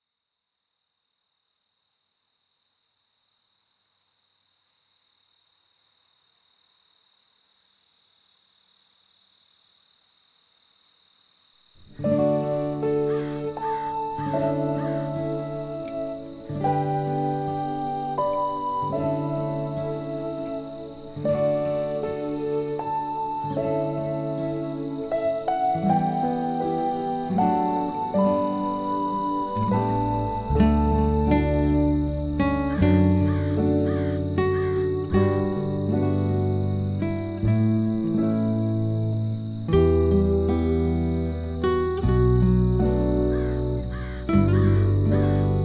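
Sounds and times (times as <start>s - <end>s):
cello: 12.0s - 45.6s.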